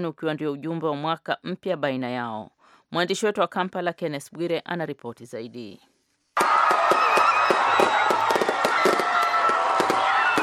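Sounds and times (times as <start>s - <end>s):
speech: 0.0s - 6.6s
fireworks bursting over a city for New Year celebrations: 6.4s - 10.4s.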